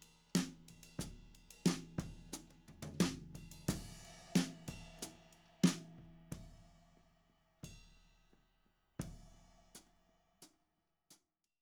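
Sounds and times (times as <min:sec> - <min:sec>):
tom drum: 0:00.0 - 0:06.7.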